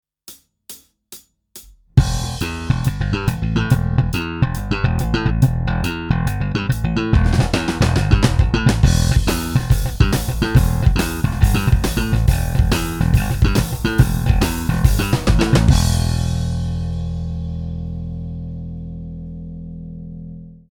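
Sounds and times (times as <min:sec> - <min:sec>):
jazz music: 0:02.0 - 0:17.2.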